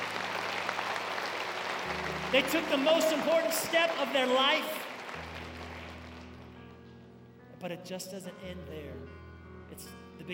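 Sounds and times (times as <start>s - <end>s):
audience applause: 0.0s - 6.6s
speech: 2.3s - 4.8s, 7.6s - 10.3s.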